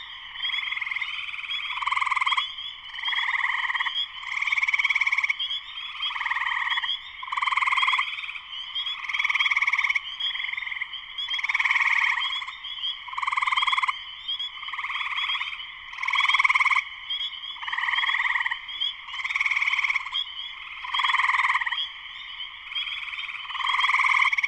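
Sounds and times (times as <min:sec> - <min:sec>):
spring peepers chorus: 0:00.0 - 0:24.4.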